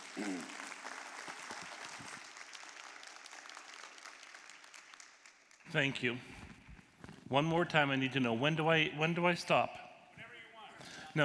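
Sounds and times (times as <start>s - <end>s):
audience applauding to welcome a speaker: 0.0s - 5.7s
speech: 0.2s - 0.6s, 5.7s - 6.4s, 7.3s - 9.8s.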